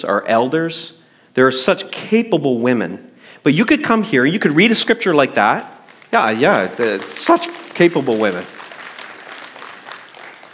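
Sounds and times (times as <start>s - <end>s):
speech: 0.0s - 8.6s
audience clapping: 5.8s - 10.5s.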